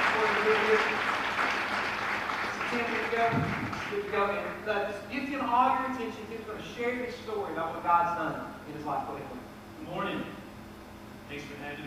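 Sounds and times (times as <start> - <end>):
audience applause for a guest speaker: 0.0 - 4.4
speech: 2.7 - 10.4, 11.3 - 11.8.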